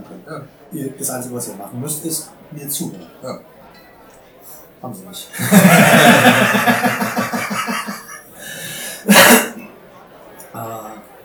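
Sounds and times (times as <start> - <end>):
speech: 0.2 - 3.6, 4.8 - 7.3
laughter: 5.4 - 9.6
cough: 9.1 - 9.7.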